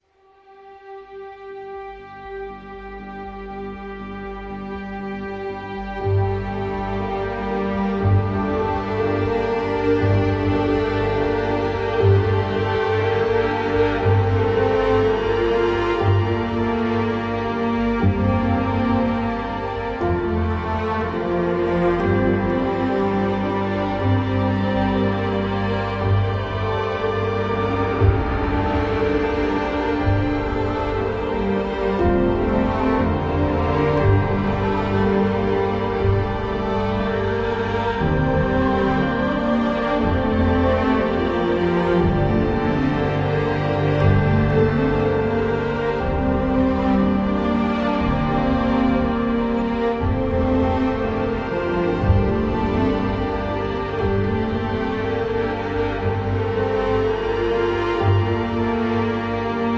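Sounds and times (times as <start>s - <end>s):
ambient prayer music: 0.4s - 59.7s.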